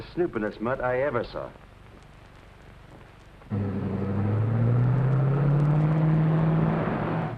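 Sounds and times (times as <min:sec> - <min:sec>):
speech: 0:00.1 - 0:01.6
old roadster car engine pulling away: 0:03.5 - 0:07.3.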